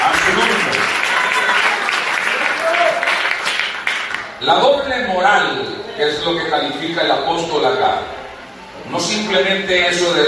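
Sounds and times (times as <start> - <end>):
audience applause: 0.0 - 4.4
speech: 4.5 - 8.2, 8.8 - 10.2.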